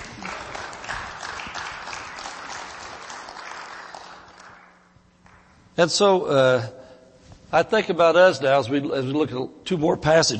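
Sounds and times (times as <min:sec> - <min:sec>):
crowd clapping: 0:00.0 - 0:05.6
speech: 0:05.8 - 0:06.8, 0:07.5 - 0:10.3.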